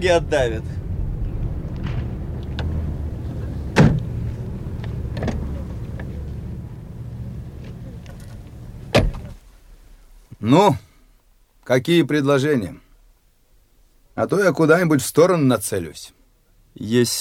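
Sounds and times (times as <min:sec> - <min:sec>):
speech: 0:00.0 - 0:00.8, 0:10.4 - 0:10.9, 0:11.7 - 0:12.8, 0:14.2 - 0:16.2, 0:16.8 - 0:17.1
low rumble: 0:00.0 - 0:09.4
car doors slamming: 0:01.8 - 0:06.6, 0:07.6 - 0:09.4.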